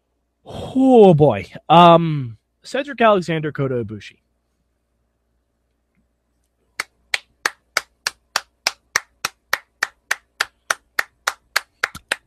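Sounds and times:
speech: 0.4 - 4.2
person clapping hands: 6.8 - 12.2.

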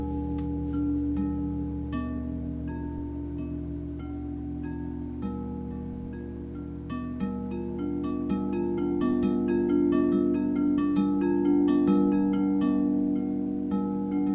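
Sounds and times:
crystal singing bowls ringing at a live concert: 0.0 - 14.3
steady low hum: 0.0 - 14.3.

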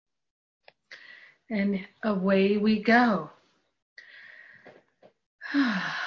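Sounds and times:
speech: 1.5 - 3.4
deep breath with sigh: 4.0 - 4.8, 5.4 - 6.0.

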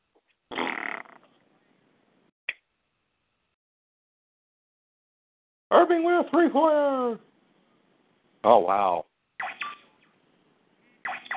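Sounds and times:
Bronx cheer raspberry blown with the lips: 0.5 - 1.2
speech: 5.7 - 7.3, 8.4 - 9.1.

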